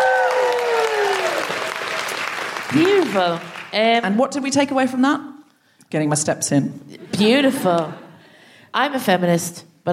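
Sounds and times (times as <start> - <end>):
audience applause: 0.0 - 3.8
speech: 2.7 - 5.3, 5.9 - 8.0, 8.7 - 9.9.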